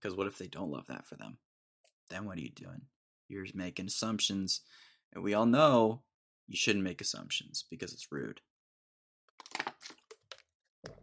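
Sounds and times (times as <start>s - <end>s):
speech: 0.0s - 1.5s, 2.1s - 8.5s
crinkling plastic water bottle: 9.4s - 11.0s.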